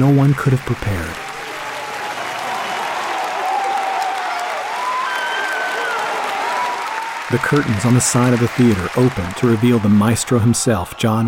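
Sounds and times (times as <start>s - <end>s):
speech: 0.0s - 1.3s, 7.3s - 11.2s
audience applauding: 0.0s - 11.2s.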